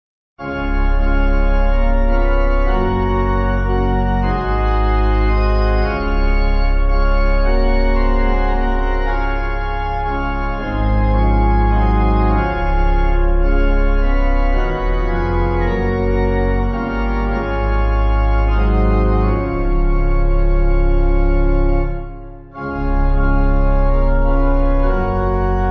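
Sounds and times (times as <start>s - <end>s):
pipe organ hymn backing: 0.4s - 25.6s.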